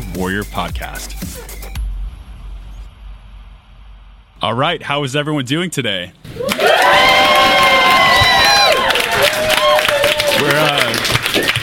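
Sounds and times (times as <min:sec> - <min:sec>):
speech: 0:00.2 - 0:01.5, 0:04.4 - 0:06.7
live audience cheering: 0:06.3 - 0:11.6
shouts and whoops: 0:06.3 - 0:11.6
clapping: 0:06.4 - 0:11.6.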